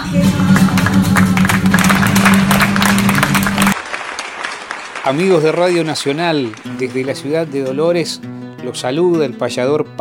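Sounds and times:
speech: 0:00.0 - 0:00.5, 0:05.0 - 0:09.9
audience applauding loudly: 0:00.0 - 0:07.8.

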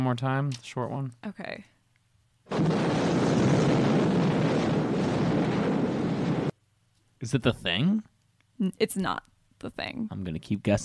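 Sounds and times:
speech: 0:00.0 - 0:01.8, 0:02.5 - 0:03.2, 0:07.2 - 0:10.8
explosion: 0:02.5 - 0:06.6.

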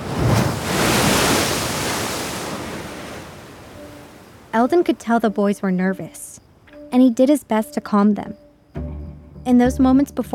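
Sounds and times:
ocean surf at night: 0:00.0 - 0:04.8
speech: 0:04.6 - 0:08.4, 0:09.5 - 0:10.3.

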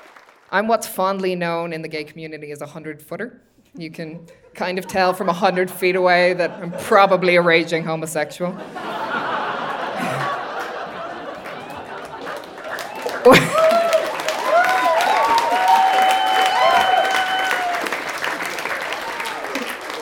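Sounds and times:
audience applauding: 0:00.0 - 0:00.5, 0:08.9 - 0:19.9
speech: 0:00.5 - 0:08.9, 0:13.2 - 0:13.6
audience laughing: 0:04.2 - 0:07.8, 0:08.5 - 0:14.6, 0:16.6 - 0:19.9
audience whooping: 0:09.9 - 0:19.9.

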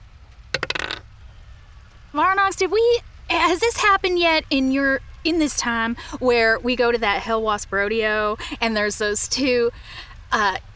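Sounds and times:
dice tumbling on a hard surface: 0:00.6 - 0:01.0
speech: 0:02.2 - 0:10.7.

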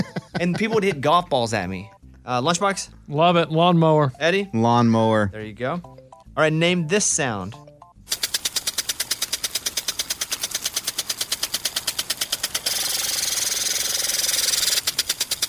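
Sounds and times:
laughter: 0:00.0 - 0:01.1
speech: 0:00.0 - 0:07.7
lawn sprinkler ticking: 0:08.1 - 0:15.4.

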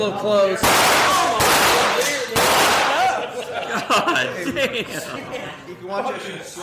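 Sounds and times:
speech: 0:00.0 - 0:02.0, 0:03.4 - 0:06.6
AR-15 rifle shots at a lake at night: 0:00.6 - 0:03.0
people laughing: 0:02.8 - 0:06.4.

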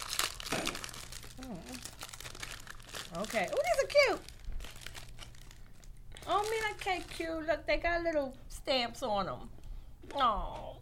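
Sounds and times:
plastic snack packaging crinkling while opened: 0:00.0 - 0:07.7
speech: 0:03.1 - 0:04.3, 0:06.3 - 0:10.8.

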